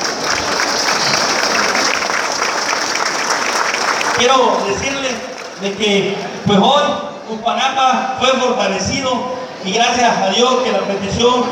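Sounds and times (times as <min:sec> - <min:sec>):
audience applause for town officials: 0:00.0 - 0:06.4
speech: 0:04.2 - 0:11.5.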